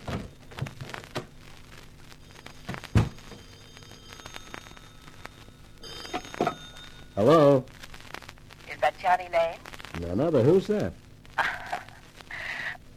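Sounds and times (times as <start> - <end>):
telephone ringing: 2.2 - 7.7
speech: 7.2 - 7.7, 9.2 - 11.0.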